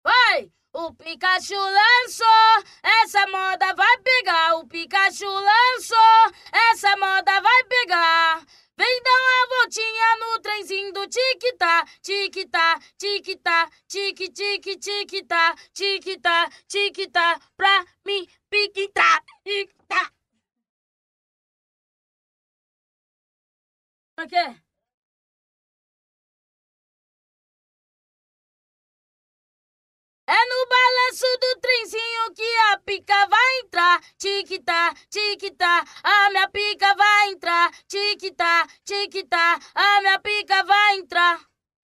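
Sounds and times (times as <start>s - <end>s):
a cappella singing: 0.1s - 20.1s, 30.3s - 41.5s.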